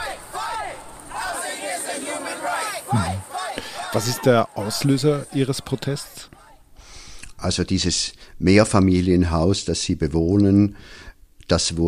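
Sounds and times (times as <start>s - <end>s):
protesters chanting a slogan: 0.0s - 6.7s
speech: 3.9s - 6.4s, 7.4s - 11.8s.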